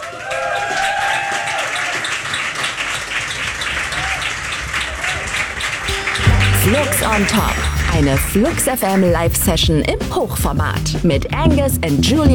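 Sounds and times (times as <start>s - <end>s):
audience applause: 0.0s - 9.1s
speech: 6.7s - 12.3s.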